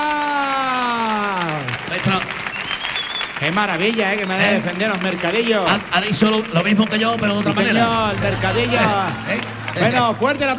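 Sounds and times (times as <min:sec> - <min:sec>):
vocal cheer: 0:00.0 - 0:01.7, 0:07.4 - 0:10.2
audience applauding: 0:00.0 - 0:10.5
crowd noise: 0:00.0 - 0:10.5
speech: 0:03.4 - 0:10.5.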